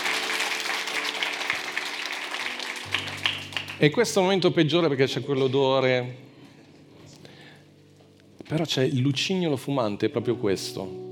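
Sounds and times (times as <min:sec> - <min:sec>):
audience applause: 0:00.0 - 0:03.8
speech: 0:03.8 - 0:06.3, 0:08.5 - 0:11.0.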